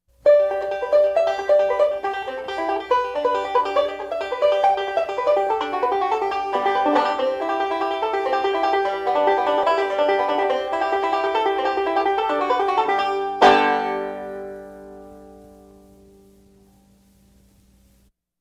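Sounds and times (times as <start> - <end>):
banjo three-finger picking: 0.2 - 16.2.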